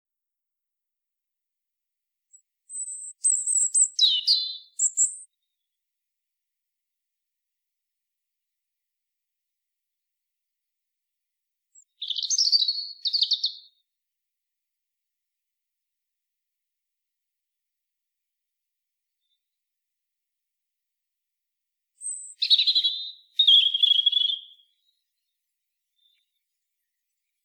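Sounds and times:
European robin singing: 0:02.7 - 0:05.3, 0:11.8 - 0:13.8, 0:22.0 - 0:25.4, 0:26.0 - 0:27.4.

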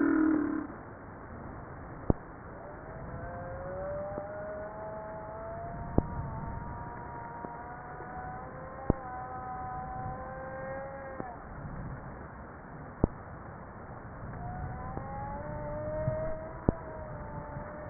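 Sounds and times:
humpback whale song with moans, downsweeps and pulsed tonal phrases: 0:00.0 - 0:00.9, 0:02.5 - 0:11.4, 0:14.4 - 0:17.8.

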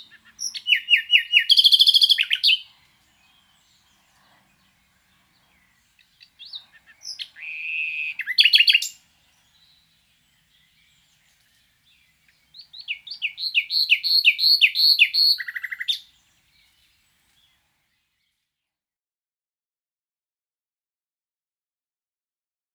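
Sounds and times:
common nightingale singing: 0:00.0 - 0:17.6.

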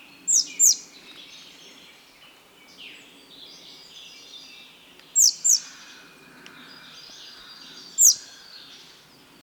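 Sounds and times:
faint bird chatter: 0:00.0 - 0:09.4.

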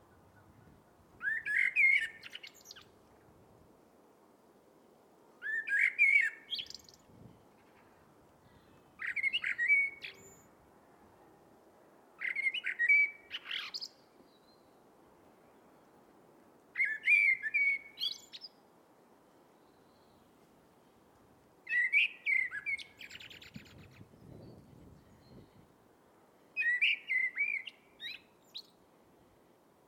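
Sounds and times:
Eurasian blackbird singing: 0:00.1 - 0:02.9, 0:05.4 - 0:07.9, 0:08.5 - 0:10.6, 0:12.2 - 0:14.8, 0:16.8 - 0:18.6, 0:21.7 - 0:25.7, 0:26.6 - 0:28.8.

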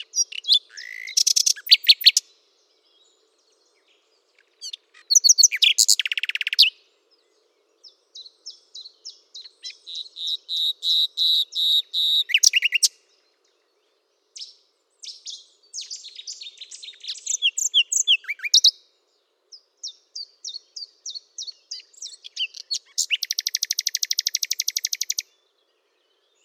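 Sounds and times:
Common nightingale singing: 0:00.0 - 0:26.4.

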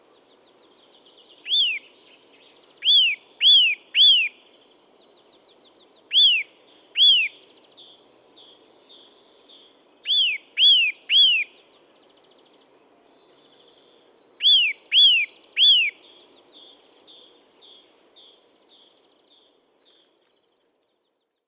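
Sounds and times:
Eurasian nuthatch whistled calls: 0:01.4 - 0:01.9, 0:02.8 - 0:04.4, 0:06.1 - 0:07.4, 0:10.0 - 0:11.5, 0:14.4 - 0:16.0.

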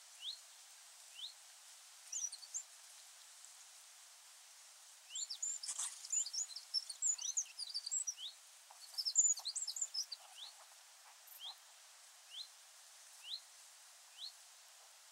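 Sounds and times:
background hiss: 0:00.0 - 0:15.1
Eurasian wren calling: 0:02.1 - 0:02.6, 0:05.1 - 0:10.7, 0:11.3 - 0:11.6.

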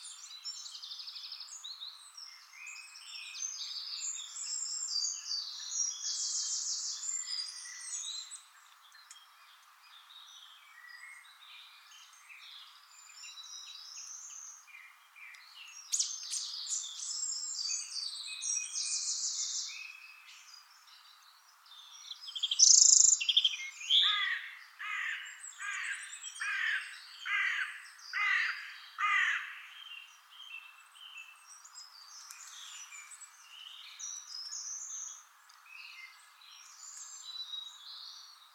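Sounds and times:
hiss: 0:00.0 - 0:28.2, 0:28.8 - 0:38.5
European robin singing: 0:00.0 - 0:38.5.

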